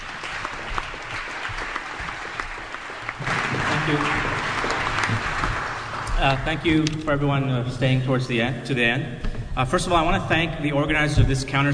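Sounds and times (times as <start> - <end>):
audience clapping to welcome an activist and writer at a counter-summit: 0.0 - 6.9
speech: 3.9 - 4.3, 6.2 - 11.7.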